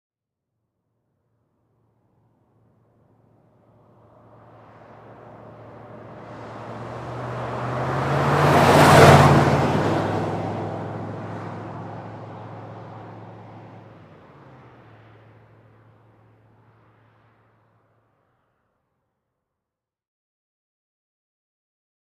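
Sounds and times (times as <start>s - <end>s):
Ford Expedition passing by at 30 mph: 2.2s - 17.9s.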